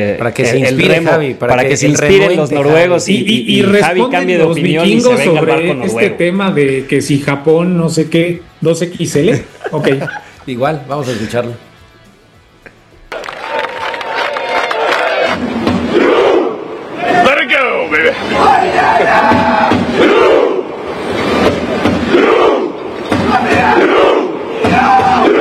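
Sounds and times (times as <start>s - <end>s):
speech: 0.0s - 11.7s
laughter: 9.3s - 10.9s
huge crowd of fans cheering and chanting in the streets: 13.1s - 25.3s.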